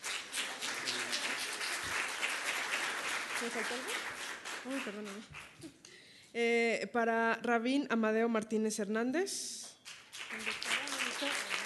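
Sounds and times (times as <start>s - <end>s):
audience applause: 0.0s - 5.6s, 10.1s - 11.6s
speech: 3.4s - 9.6s.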